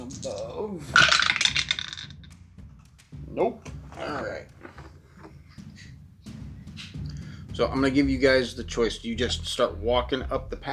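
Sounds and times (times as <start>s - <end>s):
speech: 0.1s - 1.3s, 3.4s - 4.5s, 7.6s - 10.7s
percentile dice clattering across a hard surface: 1.0s - 2.2s.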